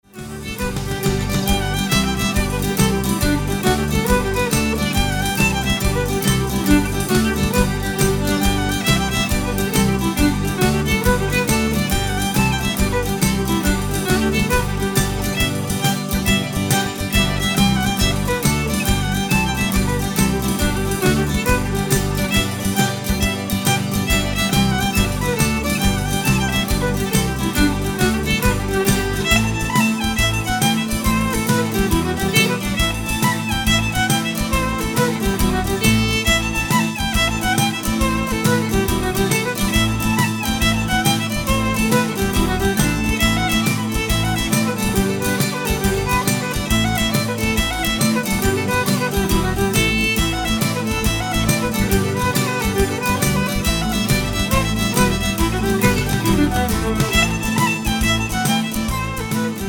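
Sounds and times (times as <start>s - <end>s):
jig tunes: 0.0s - 59.6s.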